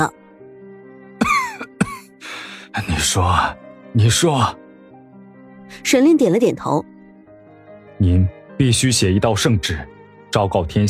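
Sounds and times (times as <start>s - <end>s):
man coughing heavily: 1.2s - 2.2s
speech: 2.8s - 4.6s, 5.9s - 6.9s, 8.0s - 10.8s.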